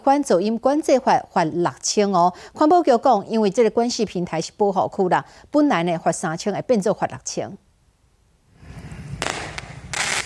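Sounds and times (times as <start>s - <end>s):
speech: 0.0s - 7.6s
fireworks exploding: 8.6s - 10.2s.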